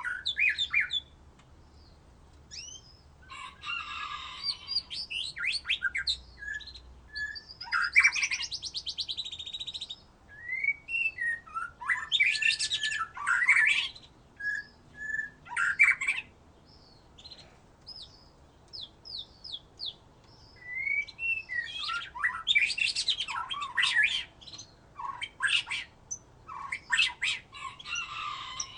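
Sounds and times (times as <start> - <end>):
White-rumped shama song: 0.0 - 28.7.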